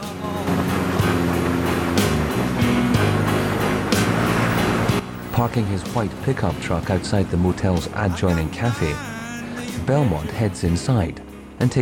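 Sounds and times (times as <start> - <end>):
cargo train trundling past the Sands Motel: 0.0 - 11.8
speech: 5.4 - 9.1, 9.9 - 11.8.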